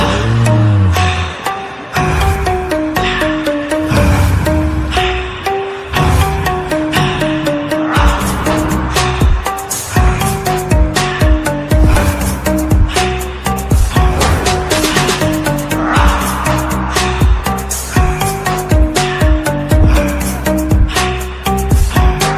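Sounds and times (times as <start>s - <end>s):
trap ringtone: 0.1s - 22.3s.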